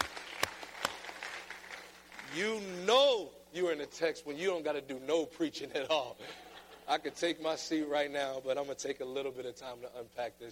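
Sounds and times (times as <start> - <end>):
audience hand clapping: 0.0 - 2.4
speech: 2.3 - 10.5.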